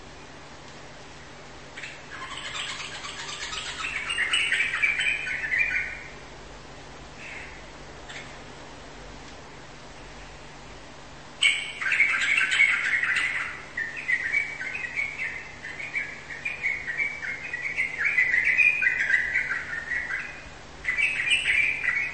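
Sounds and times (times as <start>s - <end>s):
bird chattering song: 1.7s - 6.2s, 7.2s - 8.4s, 11.4s - 22.1s.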